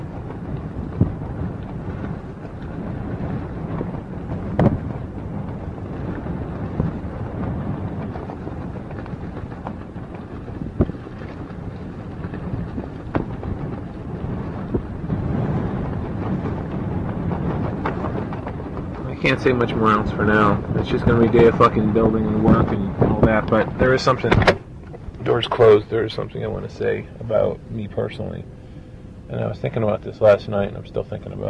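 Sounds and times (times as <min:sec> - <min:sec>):
gust thumps: 0:00.0 - 0:31.4
strong wind roaring: 0:00.0 - 0:31.4
speech: 0:19.2 - 0:24.6, 0:25.4 - 0:28.6, 0:29.3 - 0:31.4.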